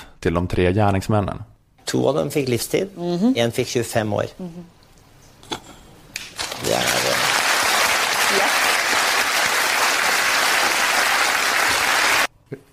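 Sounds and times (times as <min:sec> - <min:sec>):
speech: 0:00.2 - 0:04.8
audience applause: 0:06.4 - 0:12.3.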